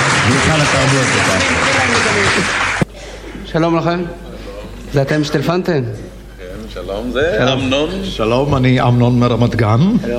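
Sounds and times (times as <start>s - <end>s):
crowd applause: 0.0s - 2.9s
speech: 0.3s - 2.8s, 3.5s - 4.2s, 4.9s - 6.0s, 6.7s - 10.1s.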